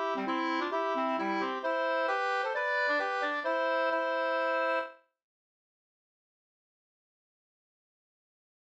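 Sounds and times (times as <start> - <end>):
hambo polska dance tune: 0.0 - 4.9.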